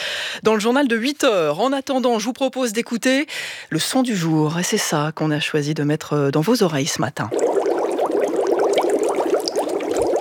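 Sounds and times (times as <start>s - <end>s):
speech: 0.4s - 7.5s
bubbles gurgling in liquid: 7.2s - 10.1s.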